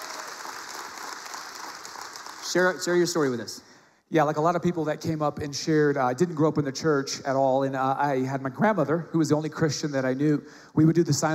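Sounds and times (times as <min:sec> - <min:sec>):
church congregation applauding after a testimony: 0:00.0 - 0:03.6
speech: 0:02.5 - 0:11.3.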